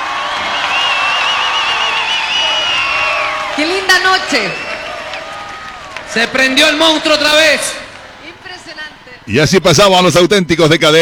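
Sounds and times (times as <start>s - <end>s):
wavering high whistles: 0.0s - 6.9s
crowd cheering and applauding: 0.0s - 9.4s
speech: 3.6s - 4.7s, 6.1s - 7.8s, 9.3s - 11.0s.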